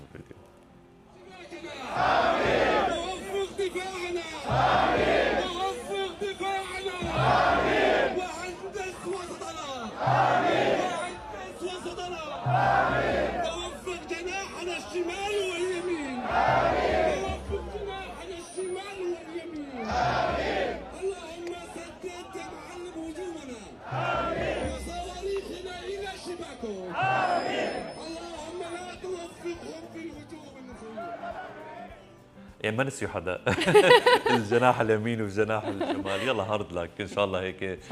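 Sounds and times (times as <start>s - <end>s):
sports fans chanting before a match: 1.8s - 18.2s, 19.6s - 21.1s, 23.7s - 25.5s, 26.8s - 28.0s
speech: 32.8s - 37.9s
laughter: 33.4s - 36.6s.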